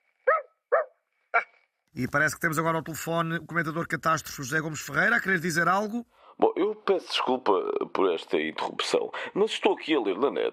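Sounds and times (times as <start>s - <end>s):
small dog barking: 0.3s - 1.5s
speech: 2.0s - 10.5s.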